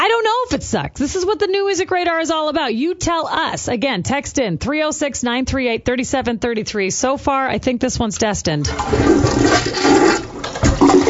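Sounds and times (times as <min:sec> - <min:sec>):
speech: 0:00.5 - 0:10.4
toilet flush sound effect: 0:08.6 - 0:11.0.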